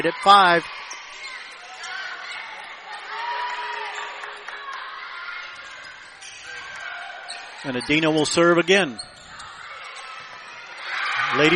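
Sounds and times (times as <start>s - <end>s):
speech: 0.0s - 1.2s, 7.6s - 9.1s, 11.3s - 11.5s
crowd cheering at volleyball match: 0.0s - 11.5s.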